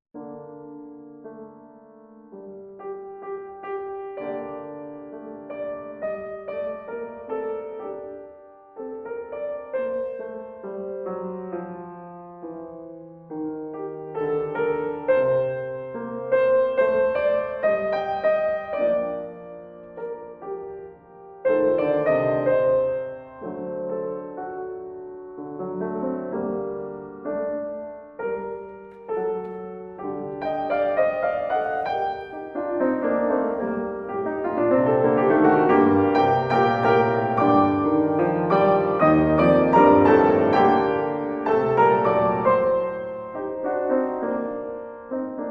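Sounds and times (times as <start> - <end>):
solo piano: 0.1 - 45.4.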